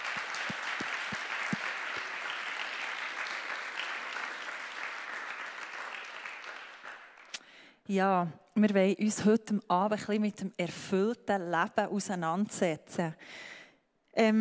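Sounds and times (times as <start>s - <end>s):
big round of applause: 0.0s - 7.4s
speech: 7.9s - 13.5s, 14.2s - 14.4s.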